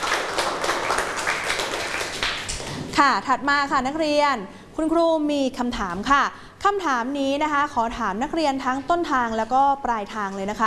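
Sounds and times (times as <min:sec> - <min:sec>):
class of students clapping for themselves: 0:00.0 - 0:02.8
speech: 0:03.0 - 0:10.5.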